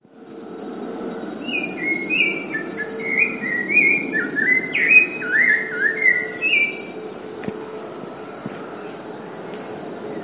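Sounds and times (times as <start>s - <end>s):
rufous-bellied thrush singing in Cantareira, São Paulo state, Brazil: 1.5s - 7.1s.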